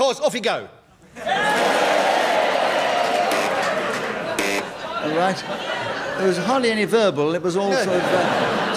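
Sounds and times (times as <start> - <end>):
speech: 0.0 - 1.7, 5.0 - 8.7
laughter: 1.0 - 6.8, 7.6 - 8.7
studio audience shouting and cheering during a panel game: 1.2 - 5.6.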